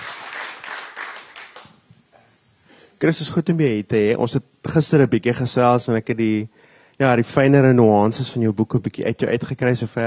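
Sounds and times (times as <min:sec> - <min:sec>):
audience applauding to welcome an author at a book event: 0:00.0 - 0:01.8
speech: 0:03.0 - 0:10.0.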